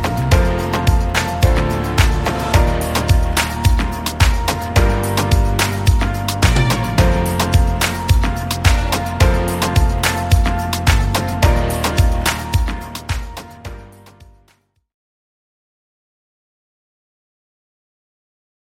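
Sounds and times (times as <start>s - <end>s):
music: 0.0s - 14.8s.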